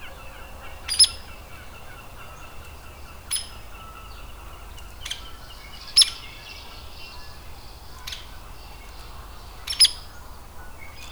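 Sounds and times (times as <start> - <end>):
Hairy woodpecker peek calls: 0.0 - 6.4, 8.0 - 10.2
background birdsong: 0.0 - 11.0.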